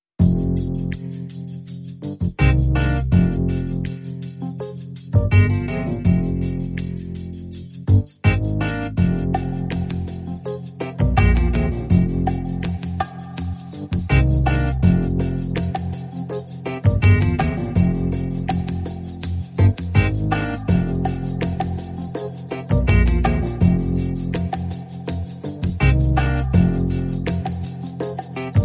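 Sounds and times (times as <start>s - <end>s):
rhythm section playing: 0.2s - 28.6s.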